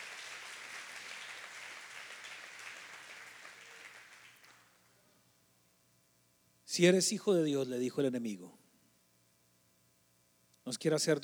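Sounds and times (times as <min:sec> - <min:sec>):
audience applause: 0:00.0 - 0:04.8
speech: 0:06.7 - 0:08.6, 0:10.7 - 0:11.2.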